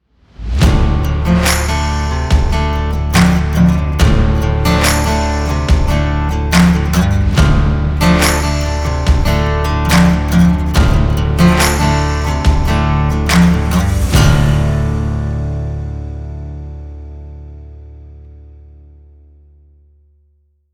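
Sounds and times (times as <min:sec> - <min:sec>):
western music logo: 0:00.6 - 0:17.8.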